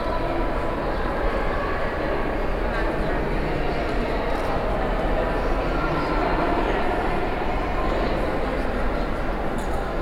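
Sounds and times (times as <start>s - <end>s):
murmur of many voices under the Texas State Capitol dome: 0.0s - 10.0s.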